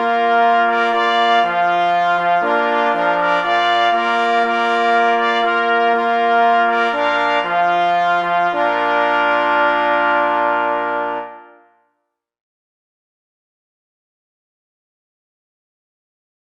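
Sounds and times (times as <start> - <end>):
hunting fanfare on pless horns and parforce horns: 0.0 - 11.9.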